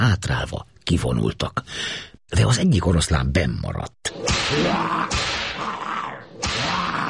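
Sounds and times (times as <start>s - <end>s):
speech: 0.0s - 5.3s
whip crack: 4.1s - 7.0s.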